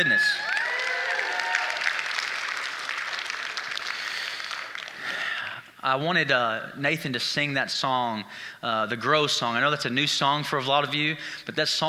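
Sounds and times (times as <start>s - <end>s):
speech: 0.0s - 0.5s, 5.8s - 11.8s
church congregation applauding the worship team at a Sunday morning service: 0.0s - 5.3s.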